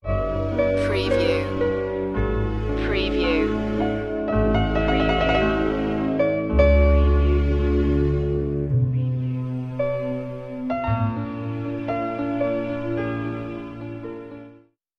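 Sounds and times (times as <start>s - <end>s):
romantic orchestral music: 0.1s - 14.7s.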